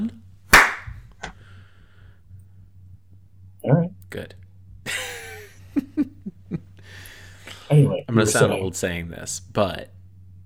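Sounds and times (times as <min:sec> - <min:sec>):
single hand clap to sync recording: 0:00.6 - 0:01.0
speech: 0:07.7 - 0:10.0.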